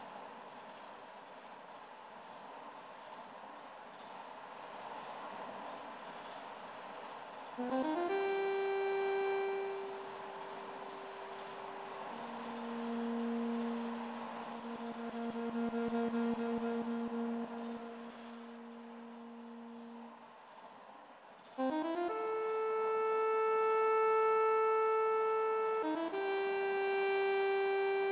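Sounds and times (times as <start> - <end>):
MIDI saxophone: 7.6 - 20.4, 21.5 - 28.1.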